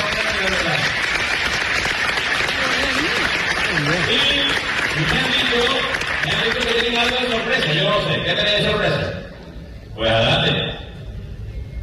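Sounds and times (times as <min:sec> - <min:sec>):
audience applause: 0:00.0 - 0:07.6
speech: 0:07.3 - 0:09.2, 0:10.0 - 0:10.6.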